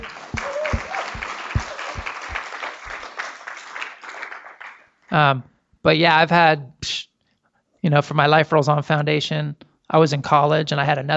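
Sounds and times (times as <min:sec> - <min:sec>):
audience applause: 0:00.0 - 0:04.9
speech: 0:05.2 - 0:06.8, 0:07.8 - 0:11.1.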